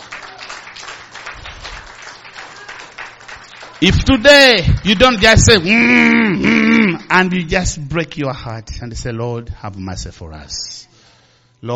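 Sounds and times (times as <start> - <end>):
audience clapping hands: 0.0 - 5.8
speech: 3.8 - 10.7, 11.6 - 11.7.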